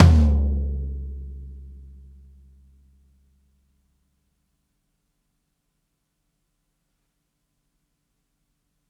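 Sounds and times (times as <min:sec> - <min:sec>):
loud roomy floor tom drum hits: 0:00.0 - 0:01.6.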